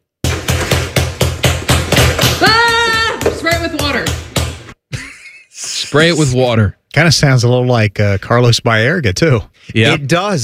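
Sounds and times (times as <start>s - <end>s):
loud heavy pounding on a door: 0.2s - 4.7s
speech: 5.9s - 10.4s.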